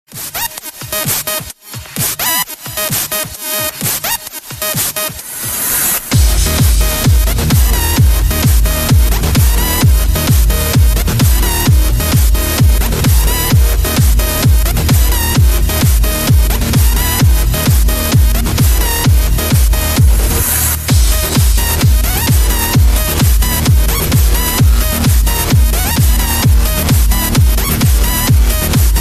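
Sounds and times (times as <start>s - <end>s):
great mega bass: 2.1s - 29.0s.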